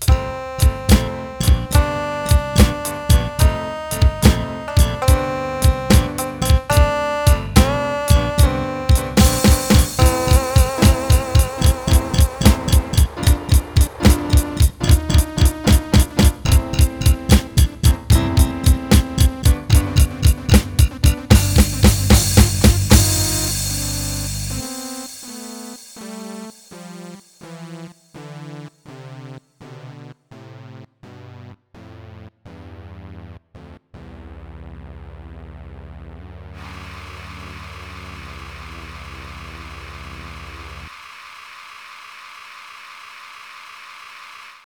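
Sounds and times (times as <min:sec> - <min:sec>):
MIDI blues music: 0:00.1 - 0:24.6.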